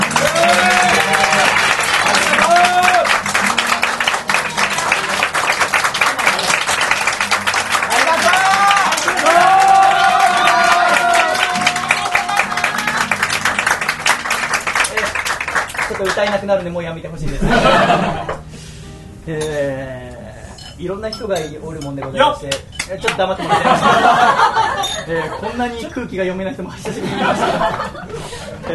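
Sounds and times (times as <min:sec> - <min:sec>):
audience applause: 0:00.0 - 0:16.3
speech: 0:16.2 - 0:18.3, 0:19.2 - 0:20.0, 0:20.8 - 0:28.7
laughter: 0:17.2 - 0:18.4, 0:23.2 - 0:25.8, 0:26.8 - 0:28.7.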